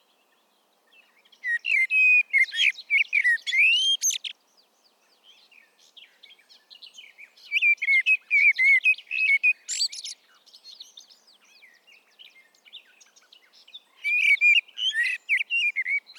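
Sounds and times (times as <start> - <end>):
common blackbird song: 0.0 - 16.1.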